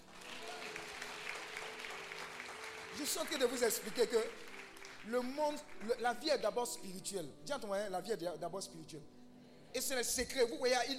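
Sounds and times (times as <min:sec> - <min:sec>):
audience applauding: 0:00.0 - 0:06.5
speech: 0:03.0 - 0:10.9.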